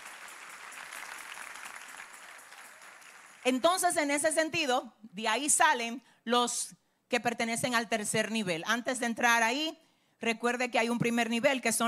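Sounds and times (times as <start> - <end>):
audience applause: 0.0 - 3.5
speech: 3.4 - 11.8.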